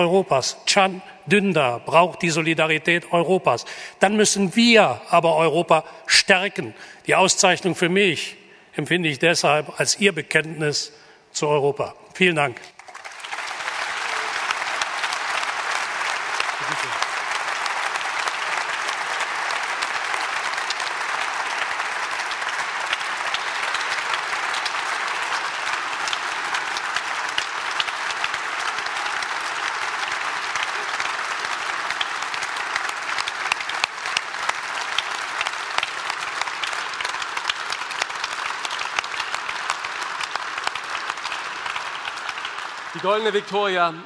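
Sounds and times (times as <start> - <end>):
speech: 0.0 - 12.8, 43.2 - 44.0
audience applause: 12.7 - 44.0.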